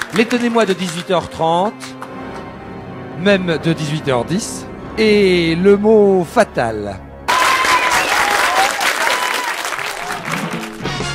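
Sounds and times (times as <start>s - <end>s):
crowd cheering: 0.0s - 0.8s, 7.3s - 10.9s
crowd applause: 0.0s - 2.1s, 7.3s - 11.0s
speech: 0.1s - 1.9s, 3.2s - 7.1s.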